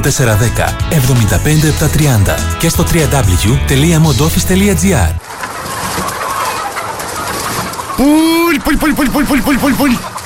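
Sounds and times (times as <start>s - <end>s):
speech: 0.0s - 5.3s, 8.0s - 10.2s
hens clucking in a chicken coop: 0.0s - 10.2s
hen squawking: 5.2s - 10.2s.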